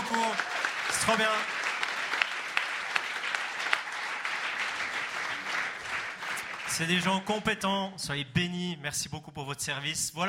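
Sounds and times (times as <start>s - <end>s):
audience applauding: 0.0s - 7.4s
speech: 1.0s - 1.6s, 6.8s - 10.2s.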